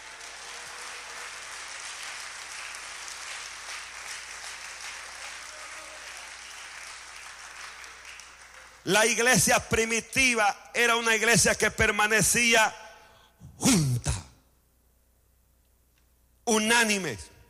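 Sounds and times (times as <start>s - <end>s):
church audience applause: 0.0s - 8.9s
speech: 8.8s - 12.8s, 13.6s - 13.9s, 16.5s - 17.3s.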